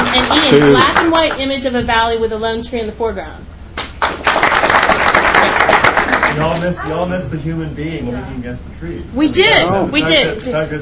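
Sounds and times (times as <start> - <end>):
audience applause: 0.0 - 1.1, 4.0 - 6.7
speech: 0.2 - 3.5, 6.4 - 10.8.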